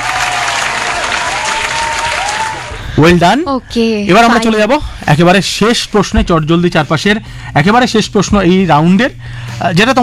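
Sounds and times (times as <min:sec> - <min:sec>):
loud applause from a quiz audience: 0:00.0 - 0:02.8
speech: 0:03.0 - 0:10.0.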